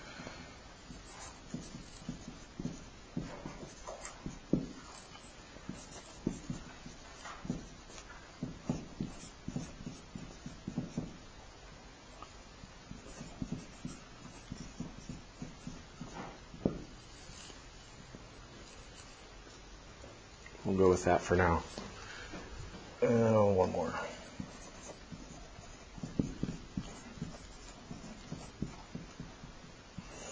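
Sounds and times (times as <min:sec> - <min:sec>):
pen writing words by hand: 0:00.9 - 0:11.2, 0:12.9 - 0:17.6, 0:18.6 - 0:19.2, 0:23.8 - 0:30.3
speech: 0:20.8 - 0:21.9, 0:23.1 - 0:24.1.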